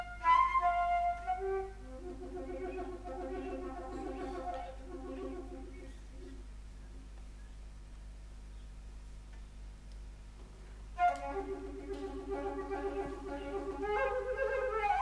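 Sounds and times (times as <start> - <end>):
flute: 0.0 - 6.4, 11.0 - 15.0.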